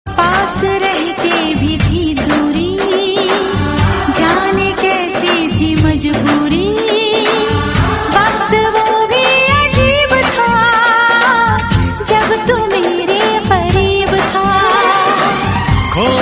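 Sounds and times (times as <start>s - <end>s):
woman singing in Hindi: 0.1s - 16.1s.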